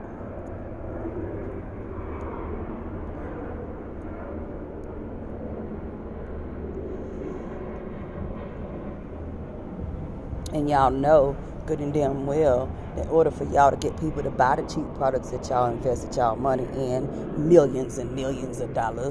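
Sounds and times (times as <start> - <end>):
aircraft flying overhead: 0.0 - 19.0
speech: 10.6 - 19.0.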